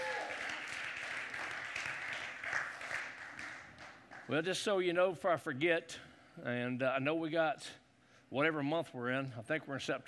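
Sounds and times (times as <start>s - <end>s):
audience applause: 0.0s - 4.0s
speech: 4.3s - 10.0s.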